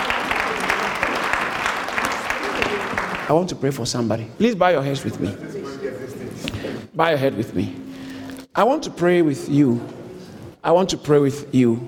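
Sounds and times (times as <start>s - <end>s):
audience clapping: 0.0s - 3.3s
speech: 3.3s - 5.6s, 7.0s - 7.8s, 8.6s - 10.0s, 10.6s - 11.8s.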